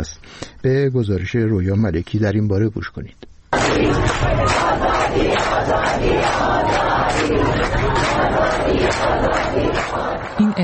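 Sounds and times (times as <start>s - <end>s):
speech: 0.0s - 10.6s
protesters chanting slogans outside government building: 3.5s - 10.6s.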